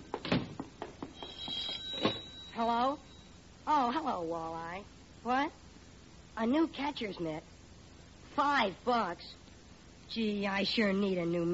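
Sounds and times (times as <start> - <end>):
telephone bell ringing: 1.1 - 3.4
speech: 2.6 - 3.1, 3.7 - 5.6, 6.4 - 7.5, 8.4 - 9.4, 10.1 - 11.5.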